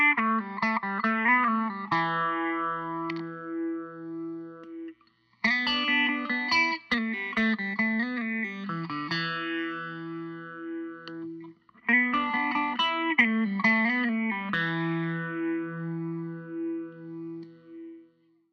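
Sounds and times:
Gibson Les Paul Custom Lite electric guitar from 1988: 0.0 - 18.2.

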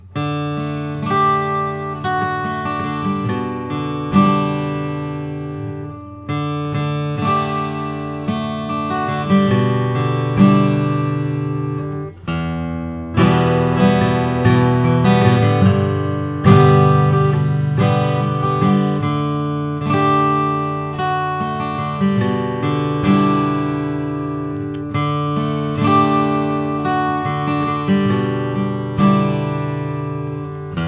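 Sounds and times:
Martin 000-28 acoustic guitar: 0.0 - 30.8.

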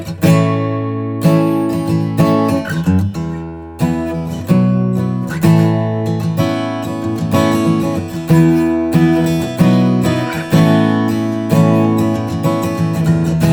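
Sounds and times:
Martin HD-35 sunburst acoustic guitar: 0.0 - 13.5.

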